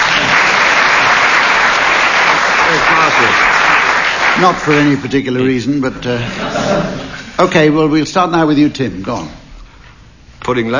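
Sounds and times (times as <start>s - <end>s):
audience applause: 0.0s - 5.3s
speech: 4.4s - 9.4s, 10.4s - 10.7s
laughter: 6.0s - 7.4s.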